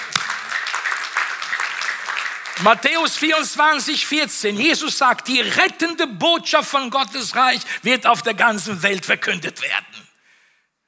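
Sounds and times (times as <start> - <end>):
audience applause at a church sermon: 0.0 - 3.7
speech: 2.6 - 10.0.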